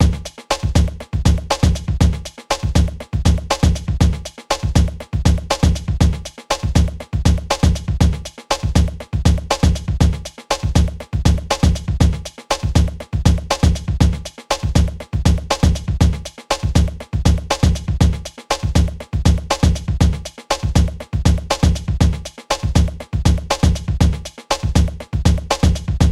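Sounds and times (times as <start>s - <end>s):
music beat: 0.0s - 26.1s.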